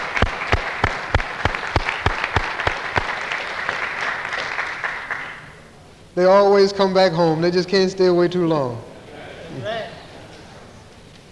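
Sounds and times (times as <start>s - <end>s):
audience applause: 0.0s - 5.7s
speech: 6.2s - 8.9s.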